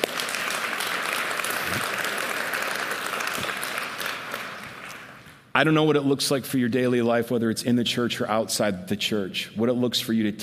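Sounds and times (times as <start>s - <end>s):
crowd applause: 0.0s - 5.3s
speech: 5.6s - 10.4s.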